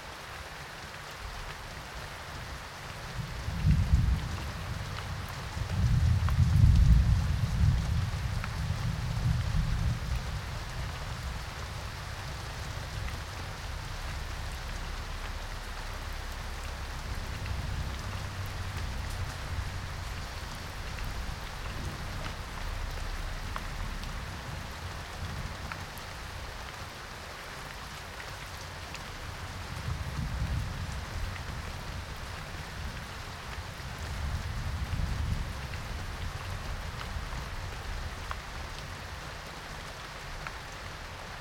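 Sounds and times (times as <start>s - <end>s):
thunderstorm: 3.1s - 26.5s, 29.2s - 38.8s.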